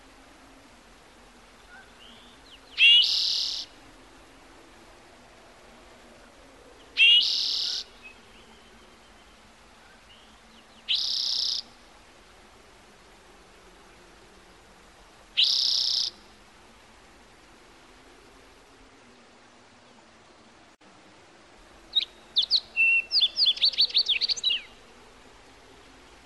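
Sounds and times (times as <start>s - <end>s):
faint background hiss: 0.0s - 26.2s
bird buzzy trill song: 1.6s - 3.8s, 6.9s - 11.8s, 15.4s - 16.4s, 21.9s - 25.0s.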